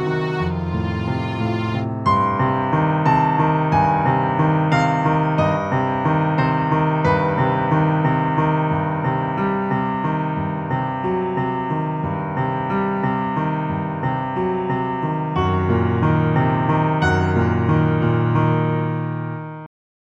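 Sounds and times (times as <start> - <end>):
static worried piano piece: 0.0 - 19.7.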